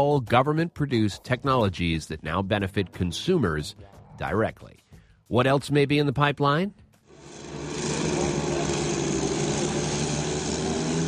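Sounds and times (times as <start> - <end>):
speech: 0.0 - 6.8
unmanned drone engine: 7.1 - 11.0.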